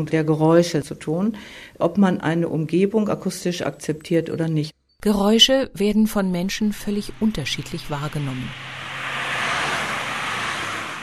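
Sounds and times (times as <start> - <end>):
speech: 0.0 - 8.7
loud road traffic: 6.5 - 11.0.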